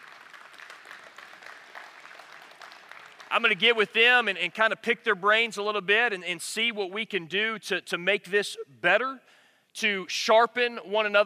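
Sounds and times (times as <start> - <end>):
audience applause: 0.0 - 3.8
speech: 3.3 - 11.2.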